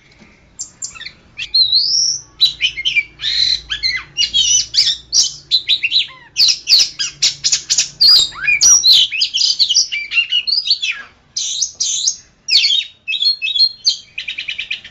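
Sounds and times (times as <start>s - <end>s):
Oriental magpie-robin singing: 0.0s - 14.9s.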